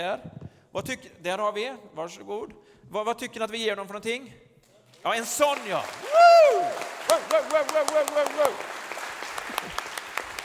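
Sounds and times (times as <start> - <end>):
speech: 0.0 - 8.7
church audience applause: 5.2 - 10.4.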